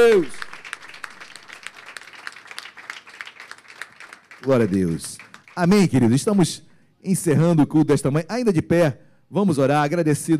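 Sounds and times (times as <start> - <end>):
speech: 0.0 - 0.4, 4.4 - 10.3
audience applause: 0.0 - 5.9.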